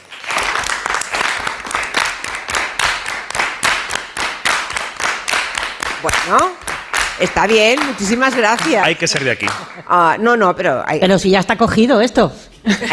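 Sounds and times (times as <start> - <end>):
audience clapping in sevillanas rhythm: 0.0 - 10.2
speech: 6.0 - 6.6, 7.2 - 12.9.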